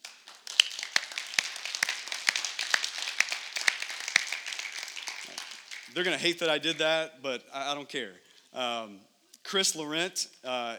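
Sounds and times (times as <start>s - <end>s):
audience clapping: 0.0s - 7.0s
speech: 6.0s - 10.7s.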